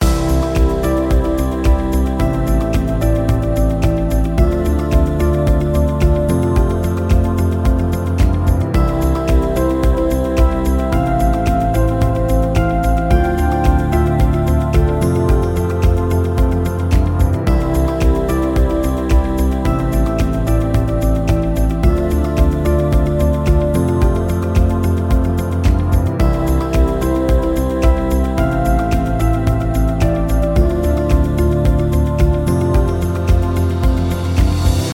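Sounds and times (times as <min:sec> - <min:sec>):
inspiring music loop ringtone: 0:00.0 - 0:34.9.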